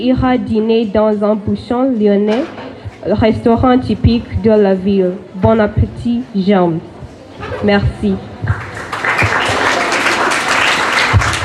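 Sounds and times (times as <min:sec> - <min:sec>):
speech: 0:00.0 - 0:06.9, 0:07.6 - 0:08.6
audience applause: 0:08.5 - 0:11.4.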